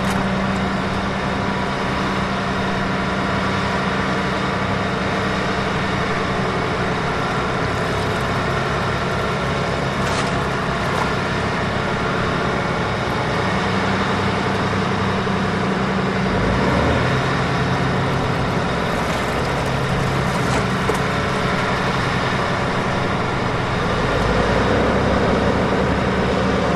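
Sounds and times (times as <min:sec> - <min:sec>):
boat dredger operating in a harbor: 0:00.0 - 0:26.7
waves lapping on rocks: 0:05.6 - 0:13.5, 0:17.6 - 0:24.2.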